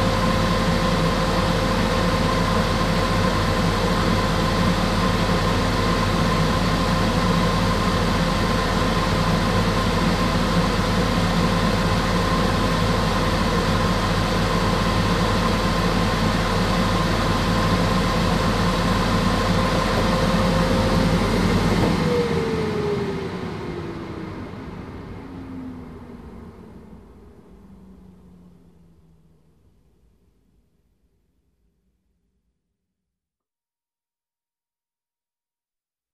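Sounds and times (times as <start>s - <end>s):
hair dryer switching on, running and switching off: 0.1s - 24.2s.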